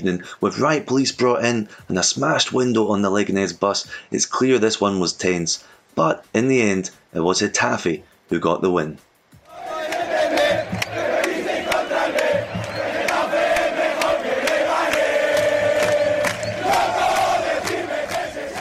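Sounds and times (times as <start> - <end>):
speech: 0.0 - 9.1
football fans singing chant in stadium: 9.5 - 18.6.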